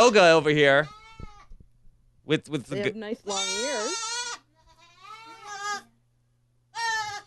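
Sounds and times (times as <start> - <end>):
speech: 0.0 - 1.0, 2.3 - 4.1
baby goat screaming: 0.0 - 1.6, 3.3 - 5.9, 6.7 - 7.2.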